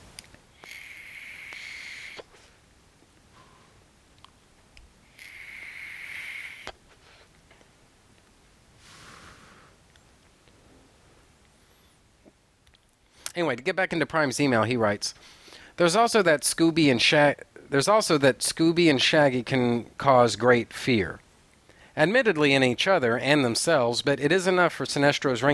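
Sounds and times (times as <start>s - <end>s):
person inhaling from a vape: 0.5s - 2.6s, 5.0s - 7.4s, 8.8s - 9.8s
exhaled vapor: 0.5s - 2.7s, 5.0s - 7.3s, 8.8s - 9.8s
speech: 13.4s - 21.2s, 22.0s - 25.5s.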